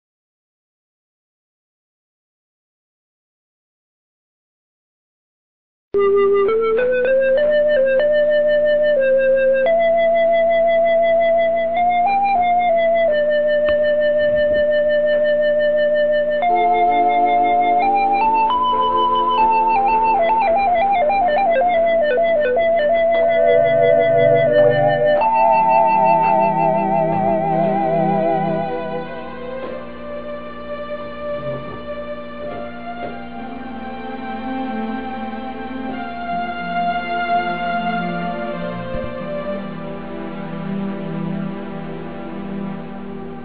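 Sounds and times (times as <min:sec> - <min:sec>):
organ: 0:06.0 - 0:43.4.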